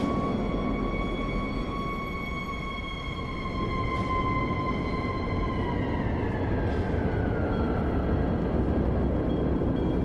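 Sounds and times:
siren-like tone: 0.0 - 10.0
street traffic rumbling: 0.0 - 10.0.

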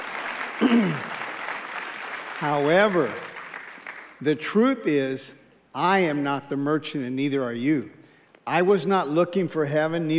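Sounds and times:
audience applause: 0.0 - 4.2
speech: 0.6 - 1.1, 2.4 - 3.3, 4.2 - 10.1.

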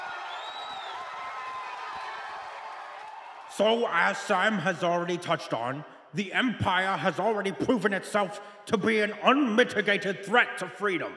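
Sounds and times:
whistles and whoops: 0.0 - 3.4
crowd applauding and cheering: 0.0 - 4.0
speech: 3.6 - 11.1.

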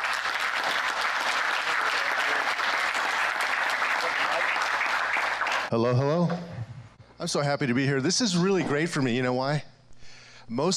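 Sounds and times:
audience applause welcoming a speaker on stage: 0.0 - 5.7
speech: 5.7 - 9.7, 10.5 - 10.7.

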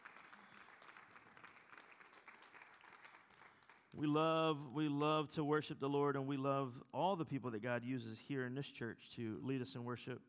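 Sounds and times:
audience applauding: 0.0 - 4.0
speech: 3.9 - 10.2.

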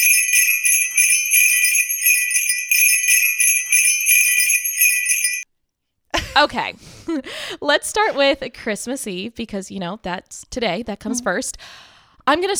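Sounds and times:
Christmas bells jingling: 0.0 - 5.4
speech: 6.4 - 12.5.

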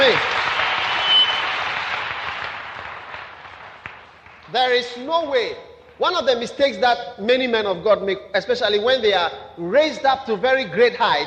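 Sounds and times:
audience applause: 0.0 - 4.5
speech: 4.5 - 11.2.

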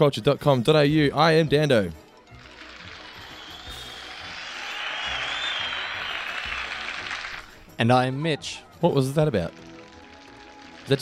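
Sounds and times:
speech: 0.0 - 2.0, 7.8 - 9.7
canned crowd applause from a sitcom sound app: 2.2 - 10.9
faint canned cheering: 2.4 - 8.9.

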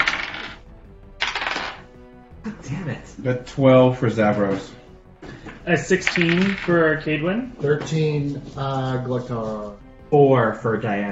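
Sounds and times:
dice clattering on a hard surface: 0.0 - 0.6, 1.2 - 1.8, 6.0 - 6.8
speech: 2.4 - 4.8, 5.6 - 11.1.

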